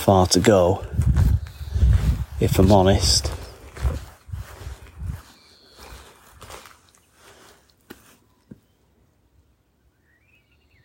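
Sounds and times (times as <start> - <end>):
speech: 0.0 - 1.1, 2.4 - 3.3
footsteps walking down to an allotment in the evening: 0.3 - 8.7.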